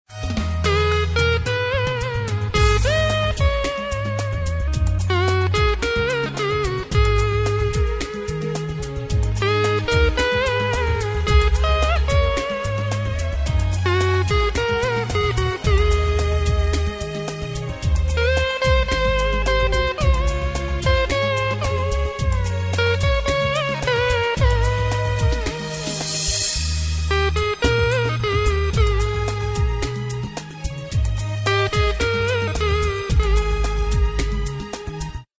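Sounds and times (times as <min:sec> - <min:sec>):
Hindi instrumental music: 0:00.1 - 0:35.3.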